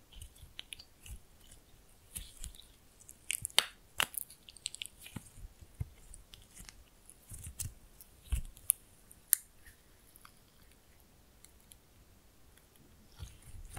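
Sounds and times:
slime being played with, squishing and popping: 0.1 - 9.5.

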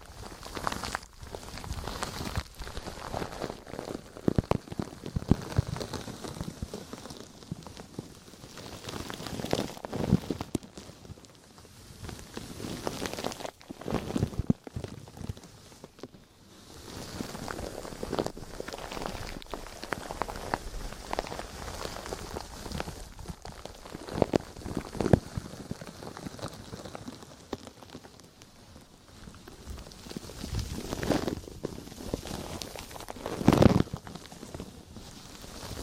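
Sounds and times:
deep crinkling and scratchy rubbing: 0.0 - 35.8.

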